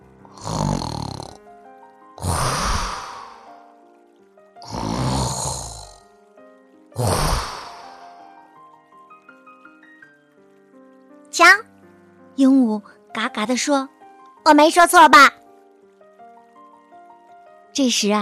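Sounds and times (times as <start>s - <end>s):
soft sustained music: 0.0s - 18.1s
hippo snoring: 0.3s - 1.4s, 2.2s - 3.5s, 4.6s - 6.0s, 7.0s - 8.1s
speech: 11.4s - 11.6s, 12.4s - 15.4s, 17.8s - 18.1s.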